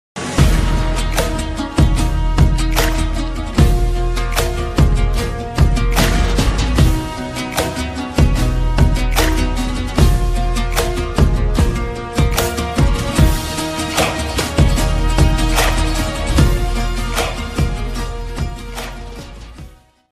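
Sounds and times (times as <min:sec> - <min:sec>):
Arabic trap music: 0:00.2 - 0:20.1.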